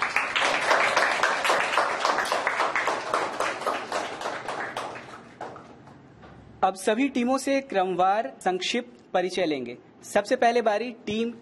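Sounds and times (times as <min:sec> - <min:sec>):
audience clapping to welcome schoolchildren quiz teams: 0:00.0 - 0:06.0
speech: 0:06.7 - 0:11.4.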